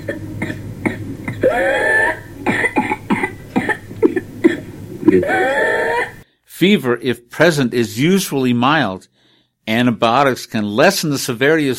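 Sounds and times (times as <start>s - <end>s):
whooping cough fit with whoop: 0.0s - 6.2s
speech: 6.6s - 11.7s.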